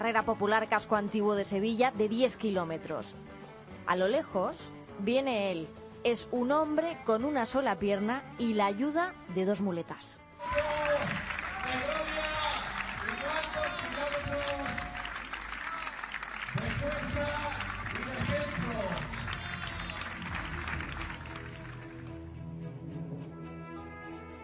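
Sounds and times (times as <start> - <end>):
speech: 0.0 - 10.8
crowd ovation at race finish line: 10.4 - 22.1.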